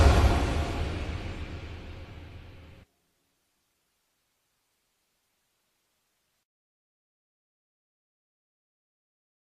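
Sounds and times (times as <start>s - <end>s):
suspense action music: 0.0s - 2.8s.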